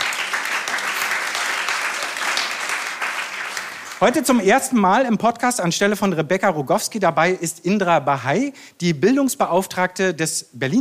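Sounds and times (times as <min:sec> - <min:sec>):
audience applause: 0:00.0 - 0:04.4
speech: 0:04.0 - 0:10.7.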